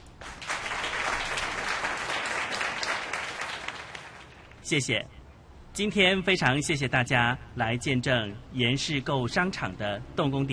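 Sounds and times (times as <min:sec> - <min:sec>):
crowd applauding: 0:00.0 - 0:04.6
speech: 0:04.7 - 0:05.2, 0:05.8 - 0:10.5.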